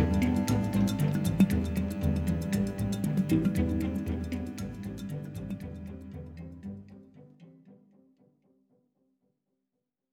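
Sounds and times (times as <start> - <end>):
cello melody: 0.0 - 7.8.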